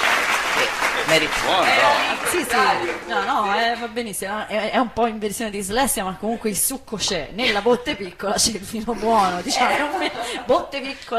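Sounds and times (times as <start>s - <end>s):
audience applause: 0.0s - 3.6s
speech: 0.6s - 11.1s
laughter: 8.9s - 10.9s.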